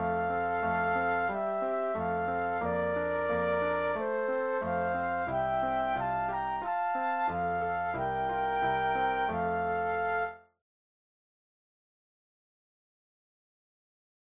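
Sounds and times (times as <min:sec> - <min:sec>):
flute duet: 0:00.0 - 0:10.6
piano: 0:00.0 - 0:10.6.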